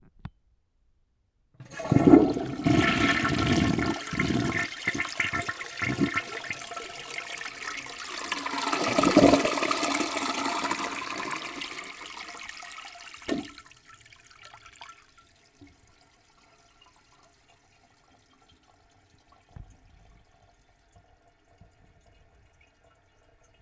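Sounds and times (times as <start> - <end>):
toilet flushing: 1.6 - 23.5.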